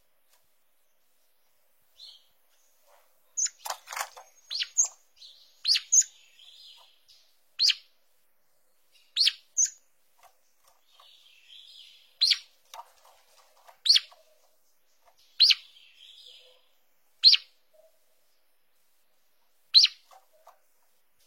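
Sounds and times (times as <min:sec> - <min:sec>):
green-winged saltator sharp chirps: 0:03.3 - 0:07.9, 0:08.8 - 0:09.8, 0:10.7 - 0:12.6, 0:13.8 - 0:18.0, 0:19.7 - 0:20.5.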